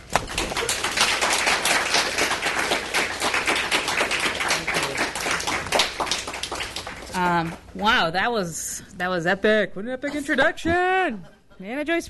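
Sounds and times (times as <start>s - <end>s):
audience applauding loudly: 0.0s - 7.7s
speech: 7.4s - 12.0s.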